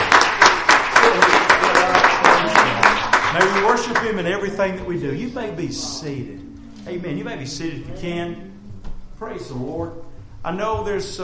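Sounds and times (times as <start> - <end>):
audience clapping hands: 0.0 - 4.9
speech: 3.4 - 8.5, 9.2 - 11.2.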